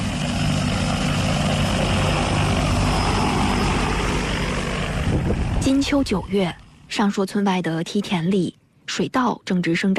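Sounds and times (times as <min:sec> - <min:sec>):
agricultural crop-spraying drone propellers buzzing: 0:00.0 - 0:06.9
speech: 0:05.7 - 0:09.9.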